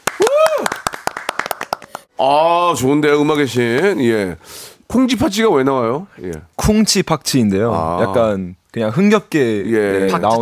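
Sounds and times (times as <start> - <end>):
clapping: 0.0 - 2.1
speech: 2.2 - 10.4.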